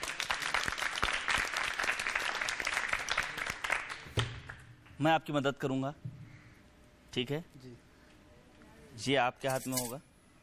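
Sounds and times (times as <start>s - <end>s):
audience applause: 0.0s - 4.0s
speech: 5.0s - 6.1s, 7.1s - 7.9s, 9.0s - 10.1s.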